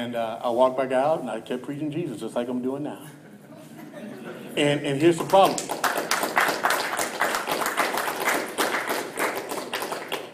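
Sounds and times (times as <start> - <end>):
speech: 0.0 - 3.2, 4.0 - 5.8
laughter: 3.2 - 4.8
audience clapping: 5.0 - 10.3.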